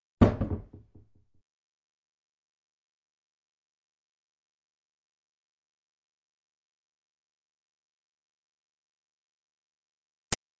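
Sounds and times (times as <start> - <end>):
doors: 0.0 - 1.4.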